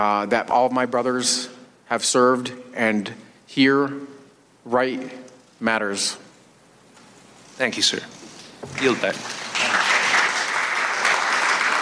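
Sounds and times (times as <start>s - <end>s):
speech: 0.0s - 6.2s, 7.6s - 9.4s
applause from a roomful of people in a hearing room: 8.7s - 11.8s.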